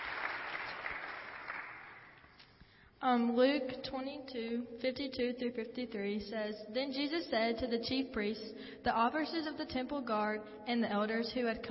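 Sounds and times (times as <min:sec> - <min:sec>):
audience applause: 0:00.0 - 0:02.2
speech: 0:03.0 - 0:11.6.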